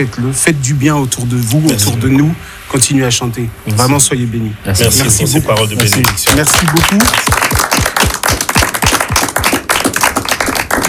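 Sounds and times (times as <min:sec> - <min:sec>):
speech: 0:00.0 - 0:07.6
clapping applause: 0:05.5 - 0:10.8.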